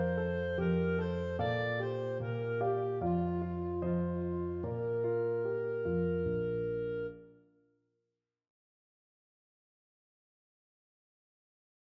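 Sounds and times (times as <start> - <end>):
clarinet: 0.0 - 7.5.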